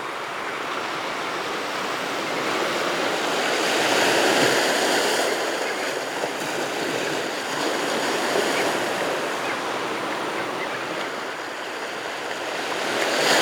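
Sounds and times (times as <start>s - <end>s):
beach nature ambience in the afternoon: 0.0s - 13.4s.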